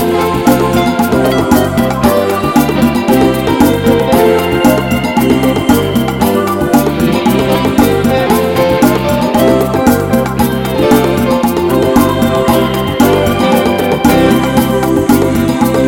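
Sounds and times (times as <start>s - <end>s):
hot samba music: 0.0s - 15.8s.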